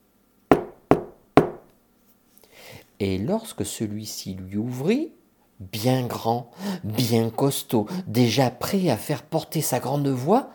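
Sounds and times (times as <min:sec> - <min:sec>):
firm knocking on a wooden door: 0:00.5 - 0:01.7
speech: 0:03.0 - 0:10.5.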